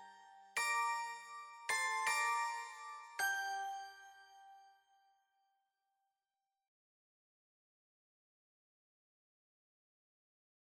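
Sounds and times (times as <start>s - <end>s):
instrumental Christmas carol: 0.3s - 4.6s.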